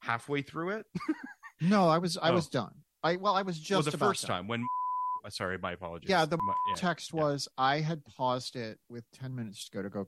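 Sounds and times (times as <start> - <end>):
speech: 0.1 - 10.0
censor bleep over a spoken name: 4.6 - 5.2, 6.4 - 6.8.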